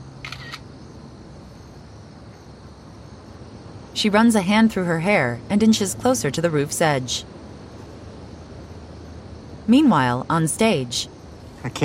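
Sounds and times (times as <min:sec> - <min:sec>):
cell phone camera taking a picture: 0:00.2 - 0:00.6
speech: 0:04.0 - 0:07.4, 0:09.7 - 0:11.8.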